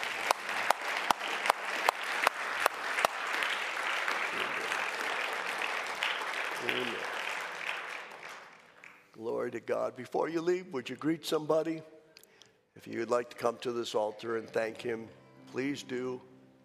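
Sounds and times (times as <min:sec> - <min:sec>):
audience clapping hands: 0:00.0 - 0:09.2
speech: 0:09.5 - 0:12.0, 0:12.8 - 0:16.3.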